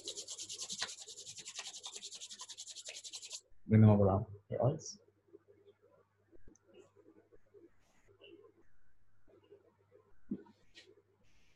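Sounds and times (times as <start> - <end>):
palms rubbing together: 0.0 - 3.4
speech: 3.7 - 5.1.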